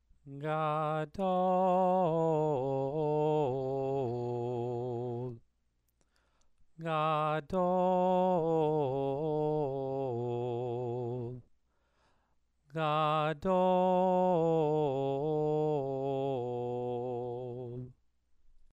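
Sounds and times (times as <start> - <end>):
person chanting scripture: 0.3 - 5.4, 6.8 - 11.5, 12.7 - 18.0.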